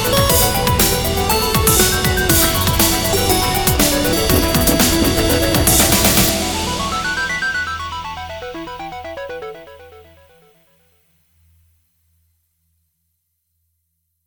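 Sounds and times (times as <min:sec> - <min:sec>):
synth step sequence: 0:00.0 - 0:10.1.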